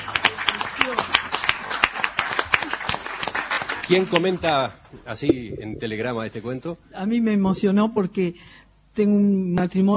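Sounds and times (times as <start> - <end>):
audience clapping: 0.0 - 4.9
speech: 3.9 - 9.9.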